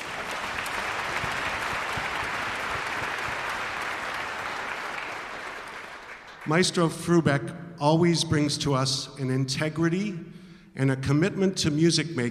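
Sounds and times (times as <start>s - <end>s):
audience applause: 0.0s - 6.5s
speech: 6.4s - 12.3s.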